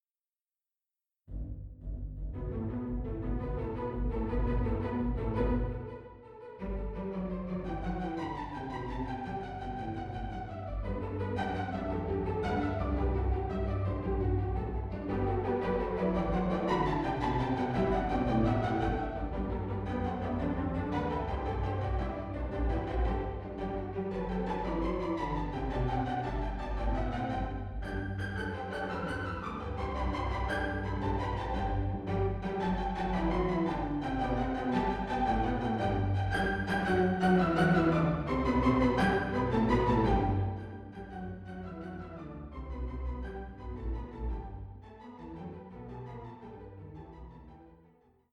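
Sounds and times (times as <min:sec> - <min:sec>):
string orchestra: 0:02.4 - 0:47.8.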